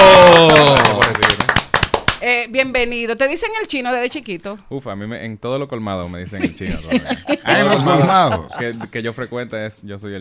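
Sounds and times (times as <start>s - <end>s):
studio audience applause: 0.0s - 2.1s
speech: 2.4s - 10.1s
laughter: 6.4s - 9.2s.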